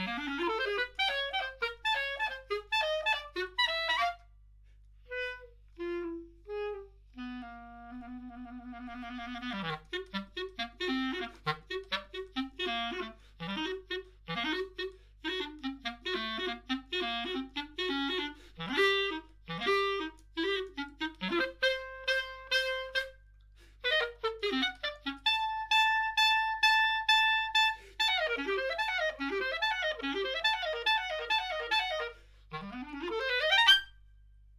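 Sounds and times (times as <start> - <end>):
clarinet: 0.0 - 34.3.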